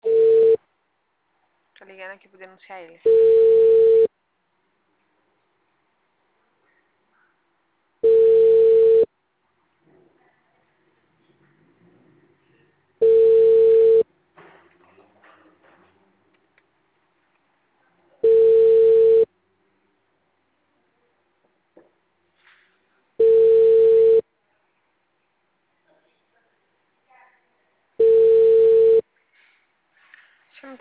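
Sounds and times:
telephone ringback tone of an unanswered dialed number: 0.0s - 0.6s, 3.1s - 4.1s, 8.0s - 9.1s, 13.0s - 14.0s, 18.2s - 19.3s, 23.2s - 24.2s, 28.0s - 29.0s
speech: 2.0s - 3.8s.

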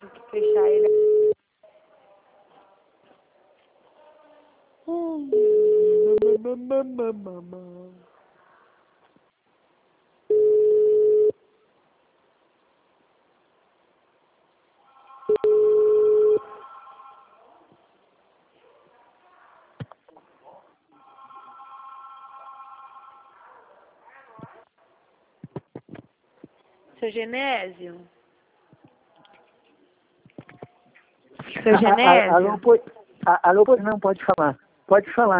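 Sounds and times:
speech: 0.3s - 1.0s, 6.5s - 7.8s, 27.1s - 28.2s, 31.6s - 35.3s
telephone tones after a dropped call: 0.4s - 1.4s, 5.3s - 6.4s, 10.3s - 11.4s, 15.3s - 16.6s.

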